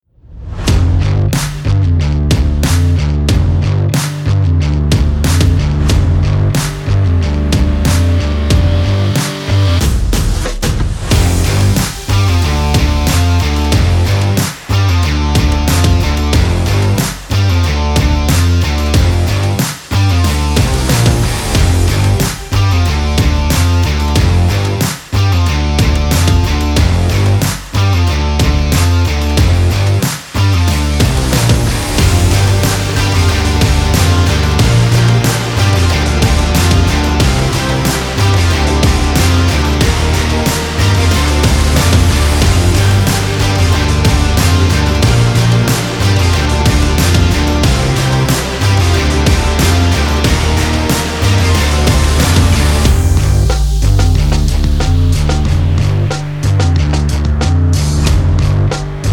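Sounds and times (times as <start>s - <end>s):
sport gym workout music: 0.6s - 59.1s.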